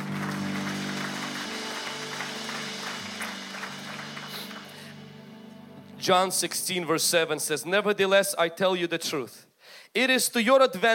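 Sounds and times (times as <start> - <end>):
audience applause: 0.0 - 5.3
speech: 6.0 - 10.9.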